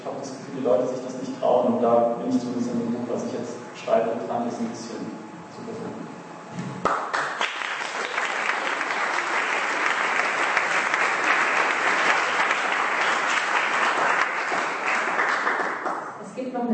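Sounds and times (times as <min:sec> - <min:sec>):
speech: 0:00.6 - 0:07.0
audience applause: 0:06.8 - 0:16.2.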